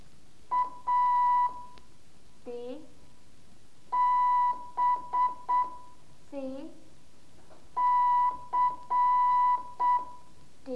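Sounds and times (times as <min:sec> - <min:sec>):
Morse code letter A beeps: 0:00.5 - 0:01.8, 0:04.0 - 0:06.0, 0:07.8 - 0:10.3.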